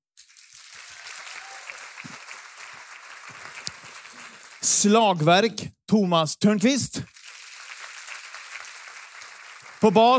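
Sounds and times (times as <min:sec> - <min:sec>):
audience applause for the band: 0:00.2 - 0:04.8, 0:07.1 - 0:10.1
speech: 0:04.6 - 0:07.1, 0:09.8 - 0:10.1.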